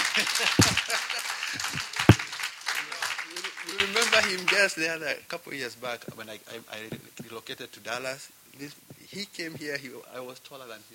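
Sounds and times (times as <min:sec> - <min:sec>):
audience clapping: 0:00.0 - 0:04.6
speech: 0:00.2 - 0:01.9, 0:03.8 - 0:10.9.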